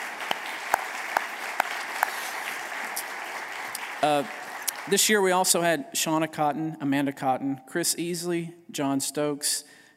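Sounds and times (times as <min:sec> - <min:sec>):
audience applause: 0:00.0 - 0:05.6
speech: 0:04.0 - 0:09.8.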